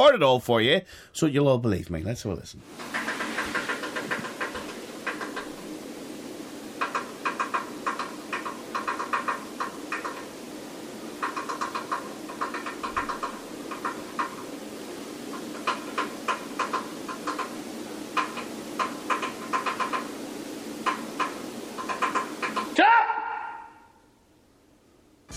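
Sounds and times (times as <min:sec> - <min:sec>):
speech: 0:00.0 - 0:03.1
mysterious tapping under kitchen sink: 0:02.8 - 0:05.7, 0:06.7 - 0:10.4, 0:11.1 - 0:20.2, 0:20.8 - 0:22.8.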